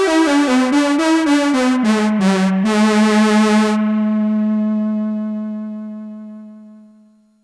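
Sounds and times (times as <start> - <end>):
triangle wave pulse: 0.1 - 7.3.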